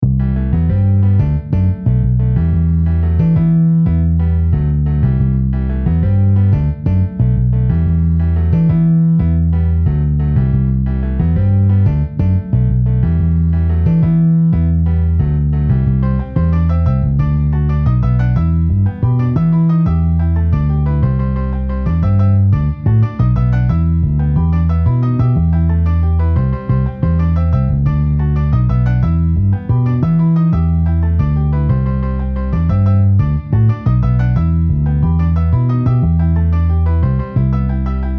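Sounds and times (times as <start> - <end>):
MIDI piano and bass: 0.0 - 38.1.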